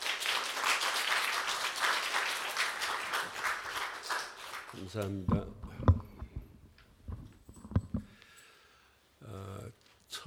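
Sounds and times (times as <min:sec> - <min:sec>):
audience applause: 0:00.0 - 0:05.0
speech: 0:04.8 - 0:06.0.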